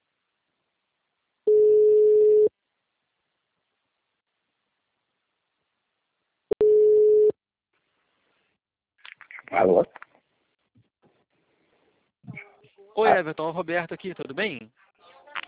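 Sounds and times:
telephone ringback tone while a caller waits for an answer: 1.5 - 2.5, 6.6 - 7.3
speech: 9.6 - 10.0, 13.0 - 14.9.

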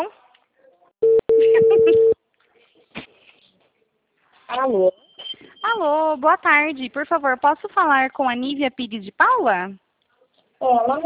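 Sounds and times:
ringback tone of an outgoing phone call: 1.0 - 2.2
speech: 4.5 - 5.0, 5.7 - 9.8, 10.6 - 11.0.

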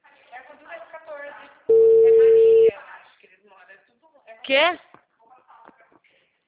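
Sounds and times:
telephone ringback tone: 1.7 - 2.7
speech: 4.5 - 4.9.

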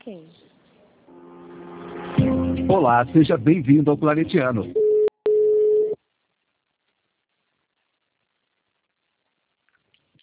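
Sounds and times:
speech: 0.0 - 0.4, 2.7 - 4.8
telephone busy tone after a dropped call: 4.8 - 6.0.

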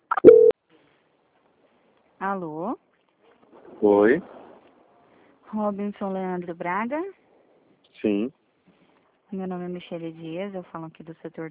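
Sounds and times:
telephone call-transfer blips: 0.0 - 0.6
steady mid-pitched telephone beep: 0.1 - 0.5
speech: 2.2 - 2.8, 3.8 - 4.4, 5.5 - 7.2, 8.0 - 8.4, 9.3 - 11.5.

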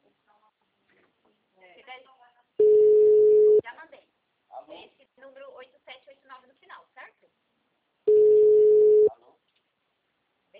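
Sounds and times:
telephone line tone after a dropped call: 2.6 - 3.6, 8.1 - 9.1.

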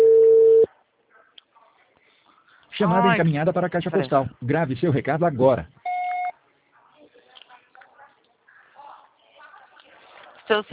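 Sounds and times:
telephone busy signal: 0.0 - 0.7, 5.9 - 6.3
speech: 2.8 - 5.8, 10.5 - 10.7.

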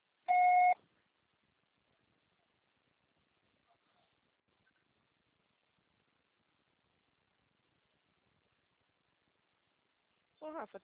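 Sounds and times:
voicemail recording beep: 0.3 - 0.8.

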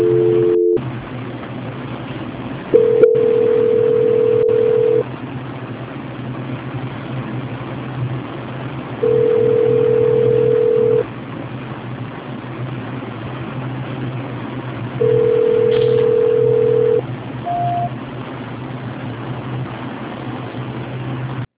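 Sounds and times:
telephone call transfer tone on a poor-quality line: 0.0 - 0.8, 2.8 - 5.0, 9.0 - 11.0, 15.0 - 17.9
constant low hum on a telephone line: 0.0 - 21.5.

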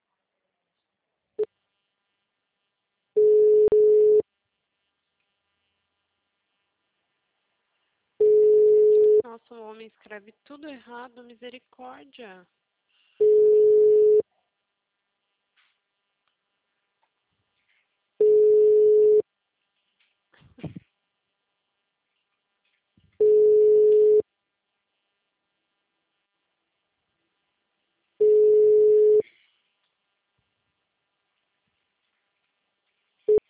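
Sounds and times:
telephone ringback tone for an unanswered call: 3.2 - 4.2, 8.2 - 9.2, 13.2 - 14.2, 18.2 - 19.2, 23.2 - 24.2, 28.2 - 29.2
speech: 9.4 - 12.6.

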